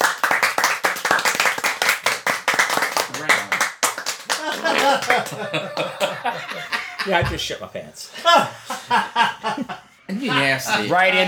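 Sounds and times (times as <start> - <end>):
hands clapping: 0.0 - 6.4
laughter: 4.4 - 11.2
speech: 4.6 - 11.2.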